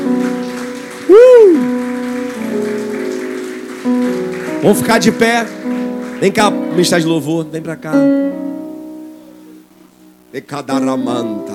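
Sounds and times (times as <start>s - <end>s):
audience applauding loudly: 0.0s - 7.7s
speech: 4.6s - 8.5s, 10.3s - 11.5s.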